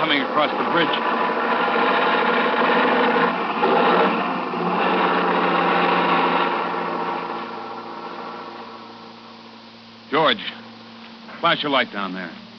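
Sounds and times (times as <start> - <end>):
truck engine pounding up a hill: 0.0 - 8.8
speech: 0.1 - 1.2, 11.4 - 12.5.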